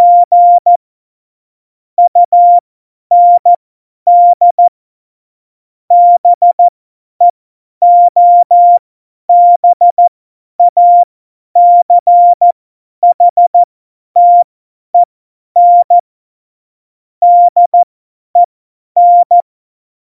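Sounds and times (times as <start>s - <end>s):
CW Morse code beeps: 0.0s - 0.8s, 2.1s - 3.5s, 4.1s - 4.7s, 5.9s - 6.7s, 7.8s - 12.5s, 13.1s - 16.0s, 17.2s - 19.4s.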